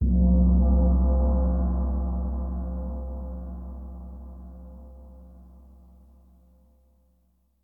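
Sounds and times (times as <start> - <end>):
gong: 0.0 - 5.8.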